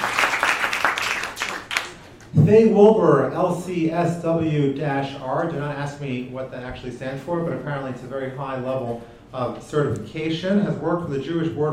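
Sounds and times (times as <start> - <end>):
audience applause: 0.0 - 2.0
speech: 2.3 - 11.7.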